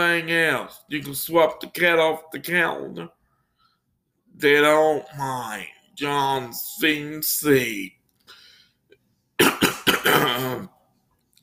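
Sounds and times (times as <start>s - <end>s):
speech: 0.0s - 3.2s, 4.3s - 8.0s, 10.0s - 10.7s
coughing: 9.4s - 10.8s
throat clearing: 9.4s - 10.8s.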